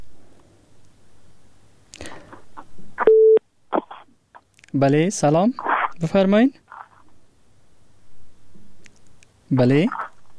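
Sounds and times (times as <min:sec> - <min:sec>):
telephone busy signal beep after a caller's line drops: 0:03.1 - 0:03.4
speech: 0:04.7 - 0:06.6, 0:09.5 - 0:10.0.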